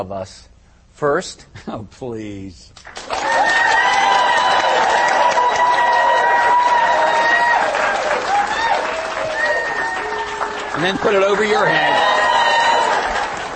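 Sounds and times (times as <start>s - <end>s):
speech: 0.0s - 3.6s, 10.8s - 12.1s
people clapping: 2.8s - 13.5s.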